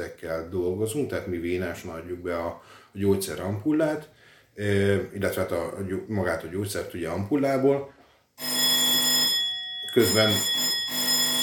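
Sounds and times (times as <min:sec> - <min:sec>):
speech: 0:00.0 - 0:08.8, 0:10.0 - 0:11.0
ambulance dispatch alert ringing: 0:08.4 - 0:11.4.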